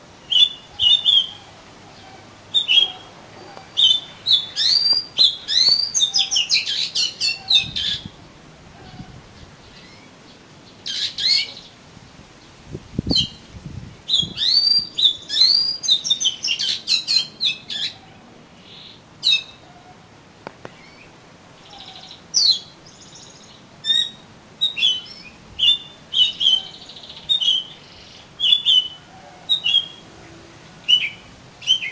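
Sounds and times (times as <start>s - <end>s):
Oriental magpie-robin whistled song: 0.2s - 1.4s, 2.5s - 3.1s, 3.8s - 8.1s, 10.9s - 11.6s, 13.1s - 13.4s, 14.1s - 18.0s, 21.7s - 30.0s, 30.9s - 31.8s.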